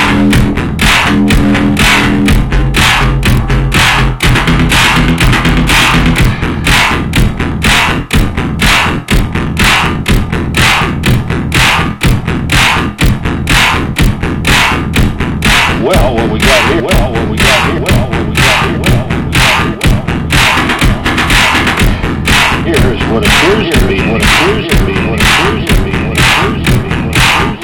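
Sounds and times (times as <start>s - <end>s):
harsh organ: 0.0s - 27.6s.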